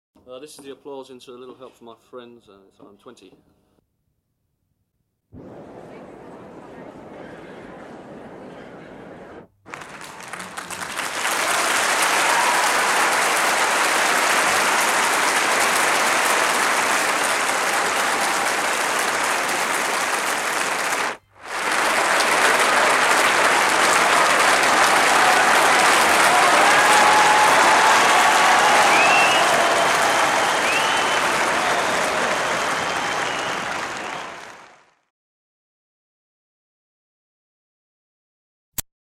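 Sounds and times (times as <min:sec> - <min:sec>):
applause: 0:09.6 - 0:35.1.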